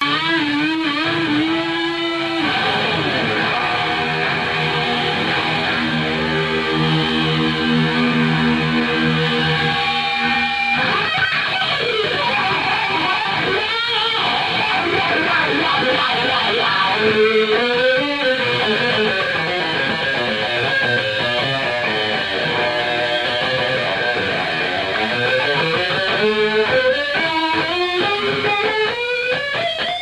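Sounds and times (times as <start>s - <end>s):
guitar solo: 0.0s - 30.0s.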